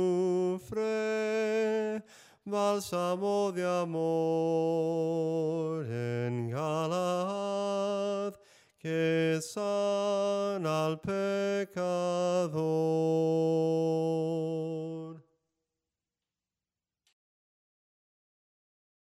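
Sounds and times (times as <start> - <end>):
soprano singing a hymn a cappella: 0.0 - 15.2.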